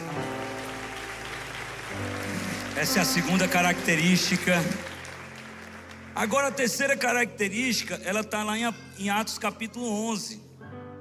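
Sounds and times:
audience applauding: 0:00.0 - 0:07.2
speech: 0:02.8 - 0:04.9, 0:06.2 - 0:10.5.

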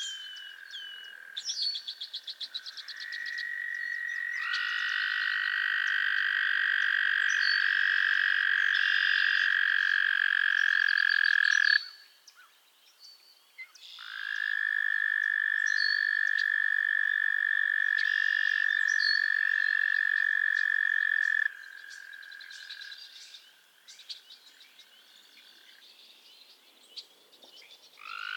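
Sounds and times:
frogs trilling: 0:00.0 - 0:12.1, 0:13.8 - 0:25.9, 0:28.0 - 0:28.3.

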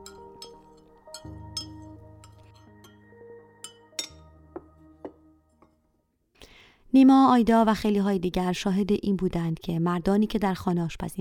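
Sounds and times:
small spoon clinking against a little cup: 0:00.0 - 0:03.0, 0:03.6 - 0:04.3
soft sustained musical tones: 0:00.0 - 0:06.0
speech: 0:06.9 - 0:11.2.

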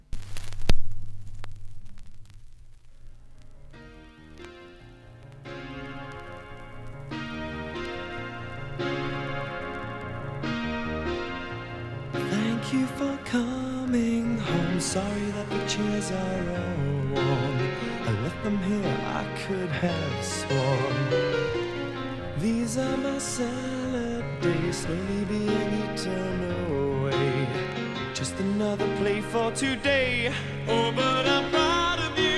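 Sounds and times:
pop song playing: 0:07.2 - 0:32.3
speech: 0:14.9 - 0:17.7, 0:18.4 - 0:21.6, 0:22.4 - 0:31.6.

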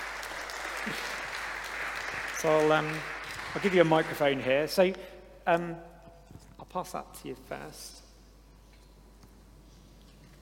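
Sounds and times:
audience applause: 0:00.0 - 0:04.7
speech: 0:00.8 - 0:01.2, 0:02.4 - 0:05.9, 0:06.7 - 0:08.0.

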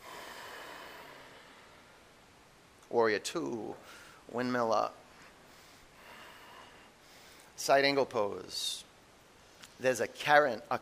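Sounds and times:
deep exhale during a yoga session: 0:00.0 - 0:02.0, 0:05.5 - 0:07.5
speech: 0:02.9 - 0:05.0, 0:07.6 - 0:08.8, 0:09.8 - 0:10.8.

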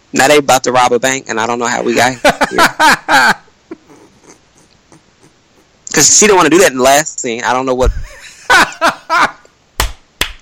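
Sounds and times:
speech: 0:00.1 - 0:03.4, 0:06.0 - 0:09.3
laughter: 0:01.8 - 0:05.7, 0:07.9 - 0:09.4
single hand clap: 0:09.8 - 0:10.4.

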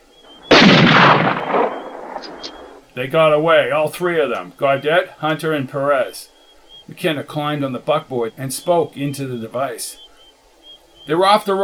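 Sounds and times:
gunshot: 0:00.4 - 0:02.8
speech: 0:03.0 - 0:10.0, 0:11.1 - 0:11.6.

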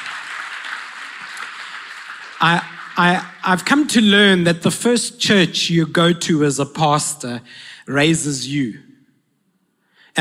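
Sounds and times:
audience applause: 0:00.0 - 0:03.8
speech: 0:02.4 - 0:08.9.

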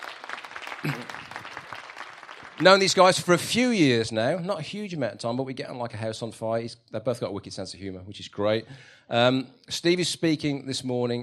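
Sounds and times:
audience applause: 0:00.0 - 0:03.6
speech: 0:00.8 - 0:01.2, 0:02.6 - 0:11.2.

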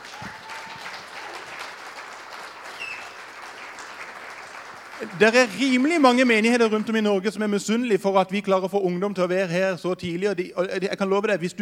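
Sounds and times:
audience applause: 0:00.0 - 0:07.1
speech: 0:05.0 - 0:11.6.

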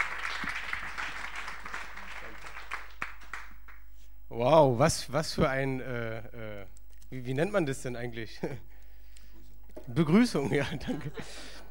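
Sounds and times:
crowd applauding: 0:00.0 - 0:03.8
speech: 0:04.4 - 0:06.5, 0:07.1 - 0:08.7, 0:09.8 - 0:11.5
laughter: 0:10.4 - 0:11.6.

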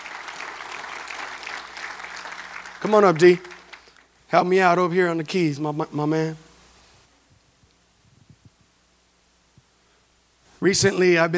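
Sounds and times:
church audience clapping hands: 0:00.0 - 0:04.1
speech: 0:02.8 - 0:03.5, 0:04.3 - 0:06.5, 0:10.6 - 0:11.3.

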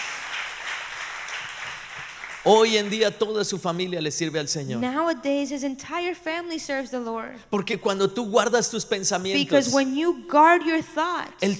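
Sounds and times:
audience applauding: 0:00.0 - 0:03.4
speech: 0:02.4 - 0:11.5.

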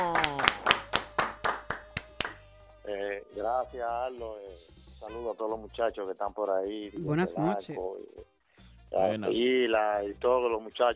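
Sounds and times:
applause: 0:00.0 - 0:02.4
speech: 0:03.5 - 0:08.3, 0:08.9 - 0:10.9.

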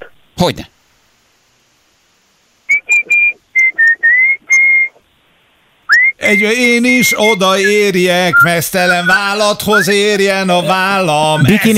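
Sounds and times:
speech: 0:00.4 - 0:00.8, 0:06.3 - 0:11.7
person whistling a song melody: 0:02.7 - 0:04.9, 0:05.9 - 0:06.2.

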